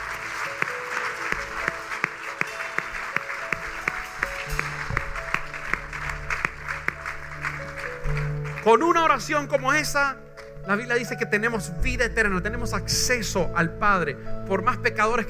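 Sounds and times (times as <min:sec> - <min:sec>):
audience applauding loudly: 0:00.0 - 0:09.9
speech: 0:08.7 - 0:15.2.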